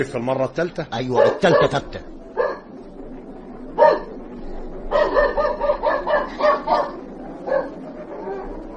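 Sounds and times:
speech: 0.0s - 2.2s
low murmur: 0.0s - 8.7s
police dog barking while circling a line of residents: 1.1s - 2.7s, 3.8s - 4.1s, 4.9s - 8.5s.

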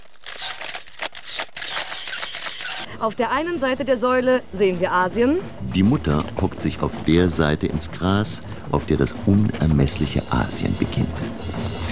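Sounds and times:
camera shutter clicks as tourists photograph at a column: 0.0s - 2.9s
speech: 3.0s - 11.8s.

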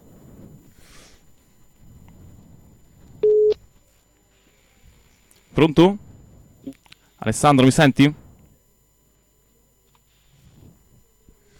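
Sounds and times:
telephone line ringing tone: 3.2s - 3.6s
speech: 5.6s - 6.0s, 6.6s - 8.2s.

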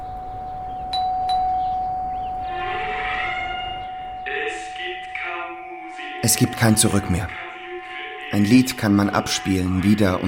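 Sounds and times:
old doorbell ringing: 0.0s - 7.8s
speech: 6.2s - 7.4s, 8.4s - 10.2s.

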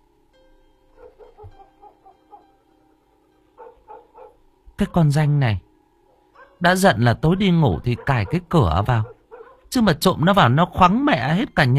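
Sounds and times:
dog barking: 1.0s - 2.5s, 3.6s - 4.4s, 6.3s - 6.6s, 7.2s - 9.7s
speech: 4.8s - 5.7s, 6.6s - 9.1s, 9.7s - 11.7s.

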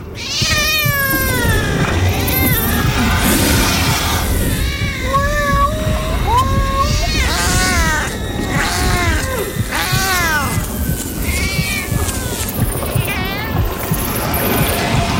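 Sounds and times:
cat meowing with changing voice: 0.2s - 15.0s.

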